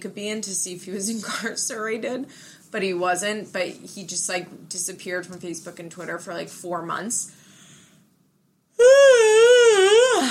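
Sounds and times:
speech: 0.0 - 7.4
person yawning: 8.8 - 10.2.

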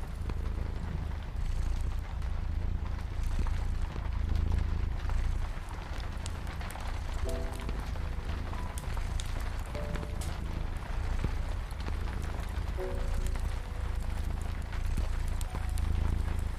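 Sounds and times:
fireplace crackling: 0.0 - 16.5
low purring rumble: 0.0 - 16.5
soft piano notes: 5.8 - 16.5.

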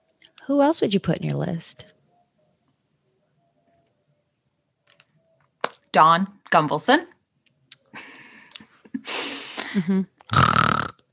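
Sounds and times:
speech: 0.5 - 2.0, 6.0 - 7.2, 9.8 - 10.4
rasping snores: 10.3 - 11.0.

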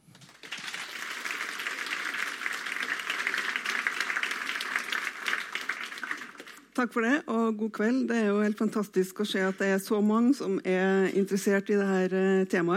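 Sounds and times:
audience applause: 0.0 - 6.8
speech: 6.8 - 12.7.

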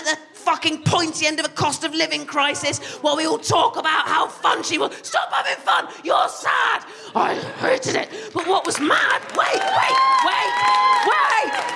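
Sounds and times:
speech: 0.6 - 11.7
steady clapping: 8.3 - 11.7
live crowd cheering and whooping: 8.4 - 11.7.

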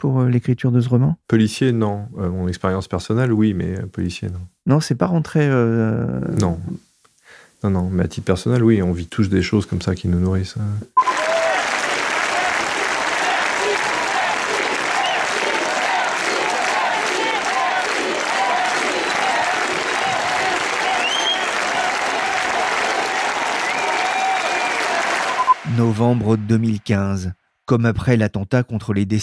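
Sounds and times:
speech: 0.0 - 6.9, 7.6 - 11.1, 26.0 - 29.2
crowd applauding police officers: 11.0 - 26.7.

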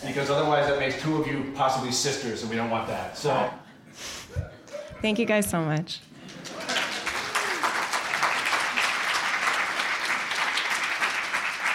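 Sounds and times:
speech: 0.0 - 6.1
audience clapping: 6.2 - 11.7.

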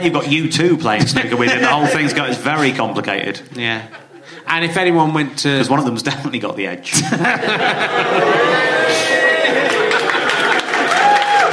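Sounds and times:
speech: 0.0 - 9.8
laughter: 1.2 - 4.7, 6.9 - 11.4
crowd cheering with raised voices: 7.4 - 11.5
audience applause: 7.8 - 11.5.

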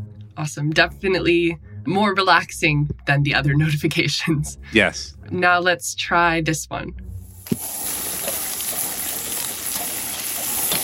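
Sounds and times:
speech: 0.4 - 7.7
bacon sizzling: 7.2 - 10.8.

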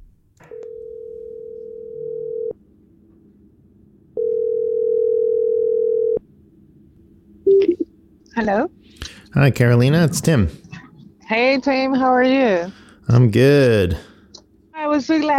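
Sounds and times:
telephone call ringing out: 0.5 - 2.6, 4.2 - 6.2
speech: 8.4 - 10.6, 11.3 - 14.1, 15.0 - 15.3.

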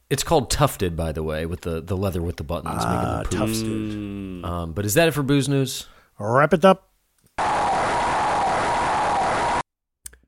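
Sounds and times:
speech: 0.1 - 7.5
generic NES video game crowd cheer: 7.4 - 9.6.

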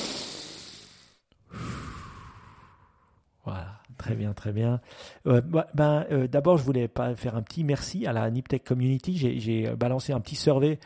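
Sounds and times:
deep breath in: 0.0 - 3.3
speech: 3.4 - 10.8.

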